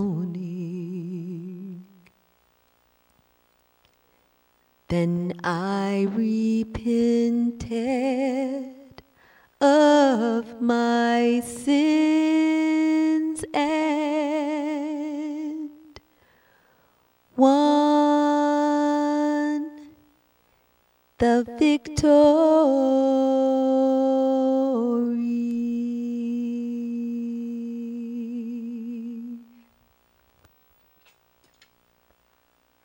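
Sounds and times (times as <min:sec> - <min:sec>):
person singing: 0:00.0 - 0:02.1, 0:04.9 - 0:16.1, 0:17.4 - 0:20.1, 0:21.2 - 0:29.7.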